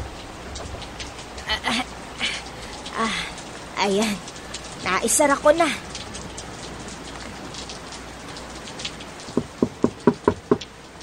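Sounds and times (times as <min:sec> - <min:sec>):
rain falling outside a house: 0:00.0 - 0:11.0
speech: 0:03.8 - 0:05.9
knocks: 0:09.3 - 0:10.7.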